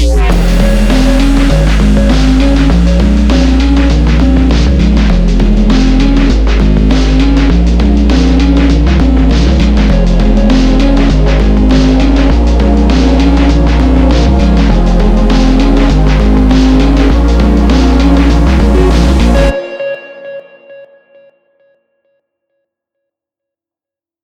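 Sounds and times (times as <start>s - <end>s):
glitch hop music: 0.0s - 20.2s.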